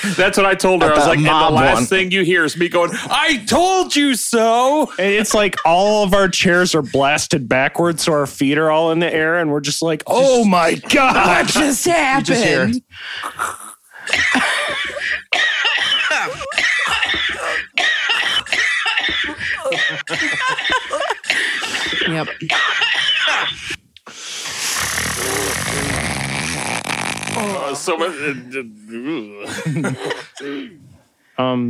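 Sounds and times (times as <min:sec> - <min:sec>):
speech: 0:00.0 - 0:14.4, 0:20.0 - 0:21.1, 0:22.1 - 0:23.8, 0:27.4 - 0:31.6
laughter: 0:10.8 - 0:15.3, 0:19.2 - 0:23.4, 0:29.4 - 0:30.4
harsh coughs and throat-clearing: 0:14.1 - 0:23.8, 0:29.5 - 0:30.8
croaky groaning throat sounds: 0:24.7 - 0:26.5.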